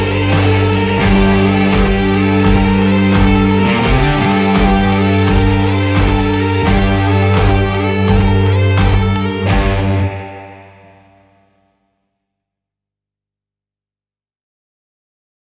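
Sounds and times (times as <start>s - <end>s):
guitar cover: 0.0s - 11.6s.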